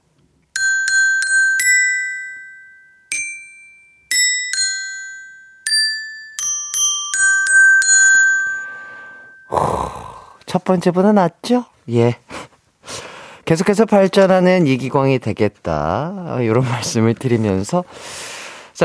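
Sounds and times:
bright xylophone performance with a touch of soul: 0.6 - 10.2
speech: 10.5 - 12.3, 13.5 - 18.1.

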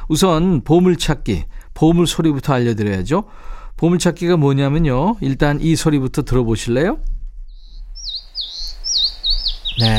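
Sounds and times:
speech: 0.1 - 7.1, 9.8 - 9.9
bird chirping call: 7.5 - 9.9.

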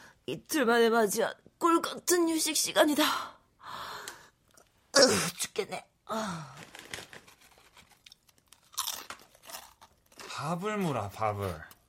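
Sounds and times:
speech: 0.3 - 3.8, 5.0 - 6.7, 10.4 - 11.7
crunchy snack being chewed: 6.6 - 10.4.

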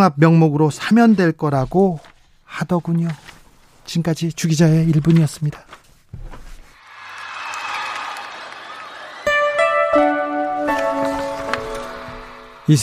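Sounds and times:
speech: 0.0 - 3.3, 3.9 - 5.8
concert crowd cheering on live recording: 6.8 - 12.8.

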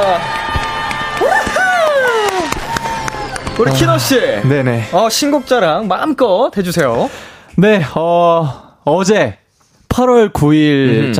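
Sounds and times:
speech: 0.0 - 0.4, 3.6 - 11.1
lively crowd-like background: 0.0 - 7.2
celebratory fanfare sound effect marking a singer's solo debut: 0.6 - 6.3.

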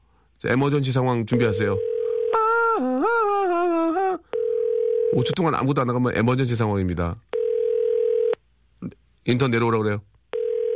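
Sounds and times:
speech: 0.4 - 1.9, 2.8 - 4.3, 5.1 - 7.3, 8.8 - 10.1
telephone call dialing tone: 1.5 - 2.4, 4.3 - 5.3, 7.4 - 8.4, 10.3 - 10.7.

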